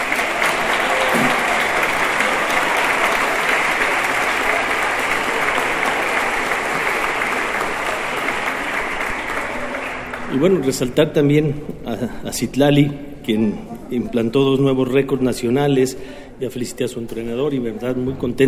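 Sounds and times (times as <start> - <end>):
audience applause: 0.0 - 10.6
speech: 10.4 - 18.4.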